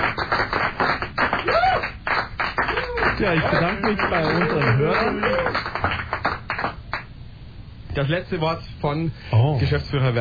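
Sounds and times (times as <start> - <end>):
audience applause: 0.0 - 7.0
speech: 3.2 - 5.7, 8.0 - 10.2.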